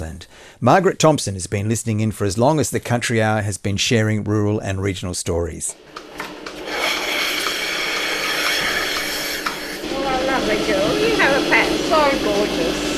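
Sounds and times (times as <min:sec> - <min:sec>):
speech: 0:00.1 - 0:06.3
dairy milking machines chugging: 0:05.7 - 0:12.9.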